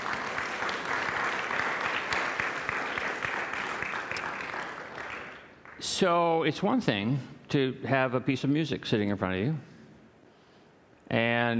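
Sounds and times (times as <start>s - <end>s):
audience applause: 0.0s - 5.9s
speech: 5.9s - 9.7s, 11.1s - 11.5s.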